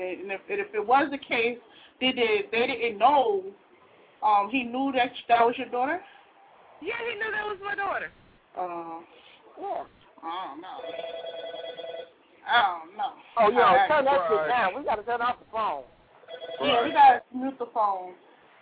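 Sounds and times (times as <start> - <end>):
speech: 0.0 - 3.6, 4.2 - 6.2, 6.8 - 11.8, 12.5 - 18.2
telephone ringing: 10.7 - 12.2, 16.2 - 17.2.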